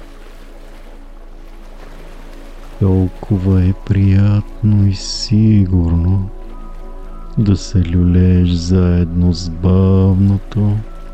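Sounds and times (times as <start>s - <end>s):
low droning hum: 0.0s - 11.1s
ocean waves washing: 0.0s - 11.1s
speech: 2.8s - 6.4s, 7.4s - 10.9s.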